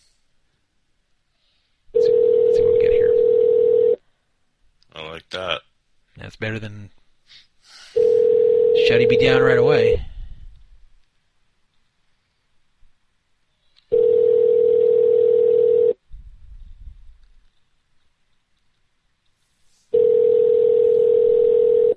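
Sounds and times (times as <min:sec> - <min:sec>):
telephone call ringing unanswered: 0:02.0 - 0:04.0, 0:08.0 - 0:09.7, 0:13.9 - 0:16.0, 0:19.9 - 0:21.9
speech: 0:06.3 - 0:07.8, 0:08.8 - 0:10.1.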